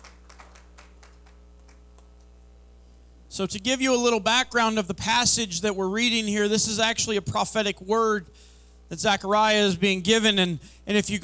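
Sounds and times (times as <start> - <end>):
seated audience clapping hands: 0.0 - 2.1
speech: 3.4 - 11.2.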